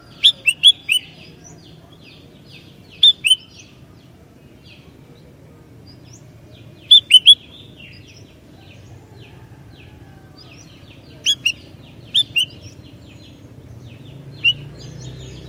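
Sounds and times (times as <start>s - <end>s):
Sooty-headed bulbul song: 0.1s - 1.6s, 2.8s - 3.7s, 6.8s - 8.2s, 11.2s - 15.4s.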